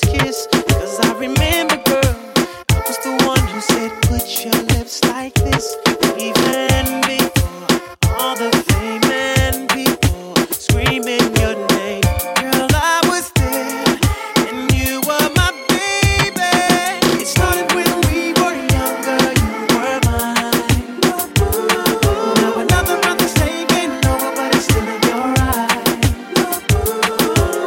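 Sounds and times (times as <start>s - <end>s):
reggaeton music at 90 BPM: 0.0s - 27.6s.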